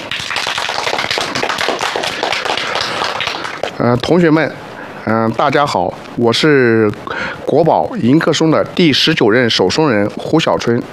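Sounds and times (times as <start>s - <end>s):
applause: 0.0s - 3.8s
speech: 3.8s - 10.9s.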